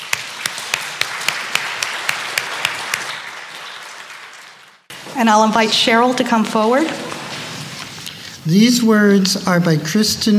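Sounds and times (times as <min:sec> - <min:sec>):
audience applauding: 0:00.0 - 0:08.0
speech: 0:05.2 - 0:07.1, 0:08.4 - 0:10.3.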